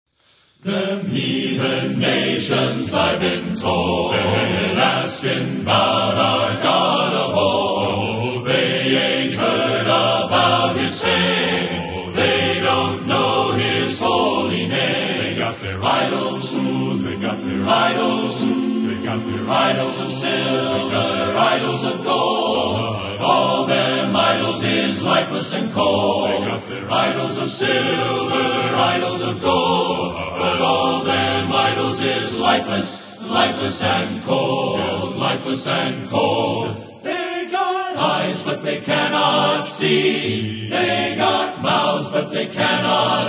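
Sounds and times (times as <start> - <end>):
men's choir singing: 0.6 - 43.2.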